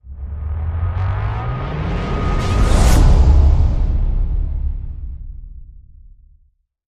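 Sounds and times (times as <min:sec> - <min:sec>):
rising crescendo slide effect: 0:00.1 - 0:05.0.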